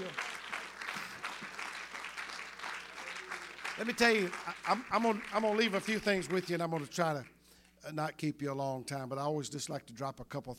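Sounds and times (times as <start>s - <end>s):
audience clapping: 0.0s - 7.4s
speech: 3.8s - 10.5s.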